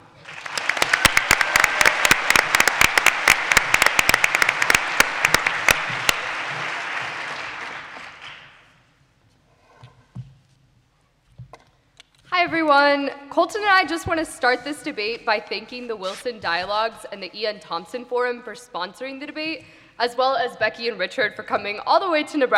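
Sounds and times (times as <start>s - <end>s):
audience applause welcoming a university speaker to a debate: 0.0s - 8.6s
speech: 12.5s - 22.5s.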